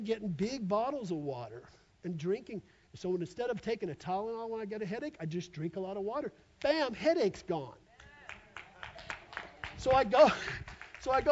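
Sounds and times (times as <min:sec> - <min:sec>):
speech: 0:00.0 - 0:07.8, 0:09.8 - 0:11.2
audience clapping in steady rhythm: 0:08.0 - 0:11.2.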